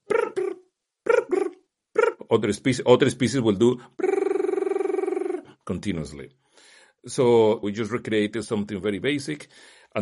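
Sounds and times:
voice imitating a cricket's chirping pattern: 0.0 - 2.3, 4.0 - 5.5
speech: 2.3 - 4.1, 5.7 - 10.0.

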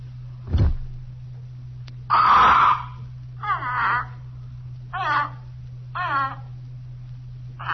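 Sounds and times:
low hum: 0.0 - 7.7
dull thump: 0.4 - 1.0.

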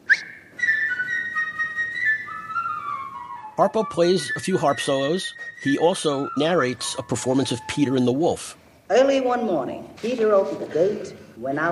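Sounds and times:
flute playing a melody: 0.0 - 8.6
speech: 3.6 - 11.7.

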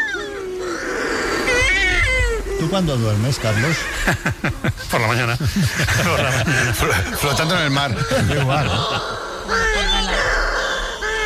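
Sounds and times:
shearwaters calling at night: 0.0 - 11.2
speech: 2.6 - 9.6
laughter: 3.5 - 10.2.

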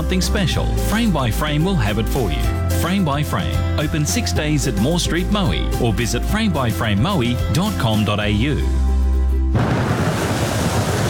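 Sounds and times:
speech: 0.0 - 8.8, 9.5 - 9.9
rain falling: 9.6 - 11.0.

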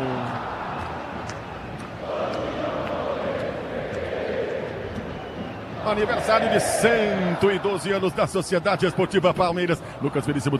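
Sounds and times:
football supporters singing and cheering: 0.3 - 8.1
speech: 5.9 - 10.5.

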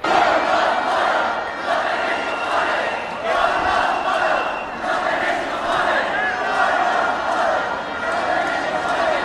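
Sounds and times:
protest crowd chanting: 0.0 - 9.2.

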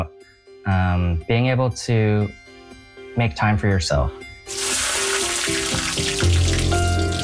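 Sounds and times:
speech: 0.0 - 2.4, 3.2 - 4.9
butter and diced onion sizzling in a piping hot pan: 4.5 - 6.4.

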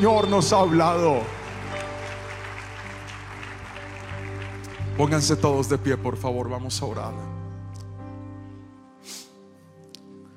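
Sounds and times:
speech: 0.0 - 1.4, 5.0 - 7.4
audience applauding: 0.0 - 5.9.

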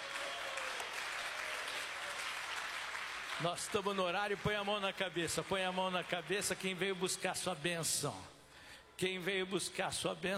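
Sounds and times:
audience clapping hands: 0.0 - 7.5
speech: 3.4 - 8.4, 9.0 - 10.3.

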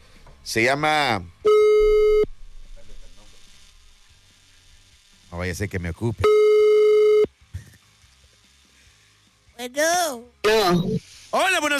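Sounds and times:
speech: 0.5 - 1.4, 5.4 - 6.4, 9.7 - 11.7
telephone tone as a radio station dials a listener: 1.5 - 2.3, 6.2 - 7.3.

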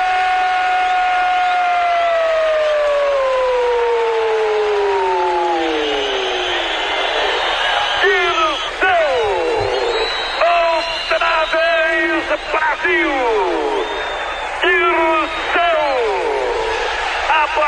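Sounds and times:
football crowd shouting and cheering: 0.0 - 17.6.

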